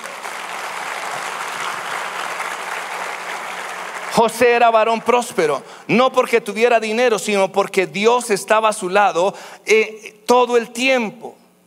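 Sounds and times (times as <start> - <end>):
audience applause: 0.0 - 5.5
speech: 4.2 - 11.4.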